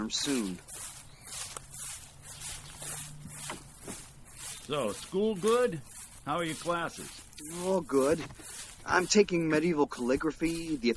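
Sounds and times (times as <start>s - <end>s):
footsteps of people walking together: 0.0s - 10.9s
speech: 0.1s - 0.8s, 4.7s - 10.9s.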